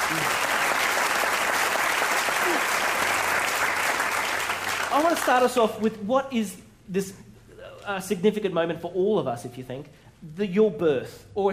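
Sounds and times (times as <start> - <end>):
audience applause: 0.0 - 5.4
speech: 0.1 - 0.5, 4.9 - 7.3, 7.9 - 11.5.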